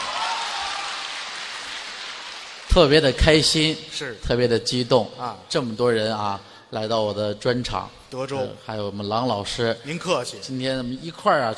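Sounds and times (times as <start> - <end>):
audience applause at a stand-up comedy show: 0.0 - 3.2
speech: 2.7 - 11.5.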